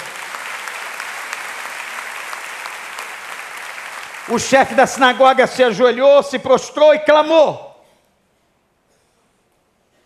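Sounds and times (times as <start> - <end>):
crowd applause: 0.0 - 5.9
speech: 4.3 - 7.7.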